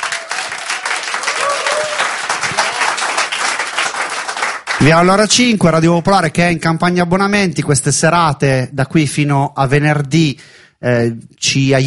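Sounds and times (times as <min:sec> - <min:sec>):
audience applauding: 0:00.0 - 0:05.0
speech: 0:04.8 - 0:11.8.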